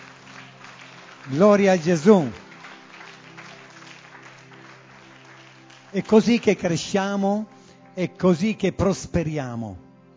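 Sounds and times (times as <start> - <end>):
audience applauding: 0.0 - 6.8
speech: 1.2 - 2.4, 5.9 - 9.9.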